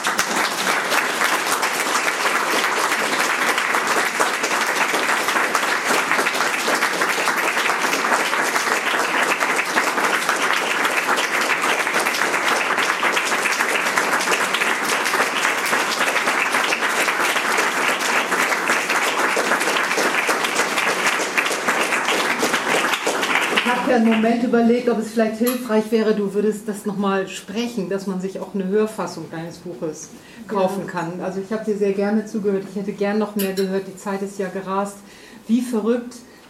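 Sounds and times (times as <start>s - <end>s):
audience applause: 0.0s - 24.2s
speech: 24.0s - 36.2s.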